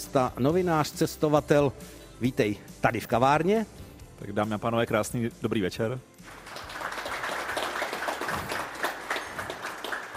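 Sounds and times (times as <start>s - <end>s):
speech: 0.1s - 6.4s
audience applause: 6.2s - 10.1s.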